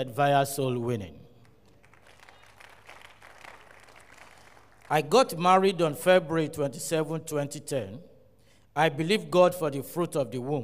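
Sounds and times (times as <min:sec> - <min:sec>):
speech: 0:00.0 - 0:01.2, 0:04.9 - 0:08.1, 0:08.8 - 0:10.6
audience clapping in praise: 0:01.4 - 0:05.2.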